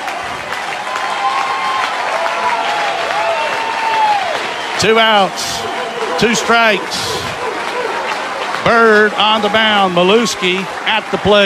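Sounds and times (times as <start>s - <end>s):
baseball stadium crowd cheering and applauding: 0.0s - 11.4s
speech: 4.8s - 7.3s, 8.6s - 11.4s.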